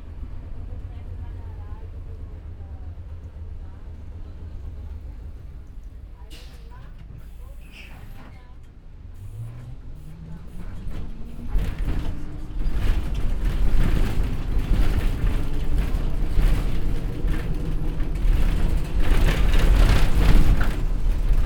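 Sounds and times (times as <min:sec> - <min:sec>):
bus interior sounds in Brazil: 0:00.0 - 0:21.4.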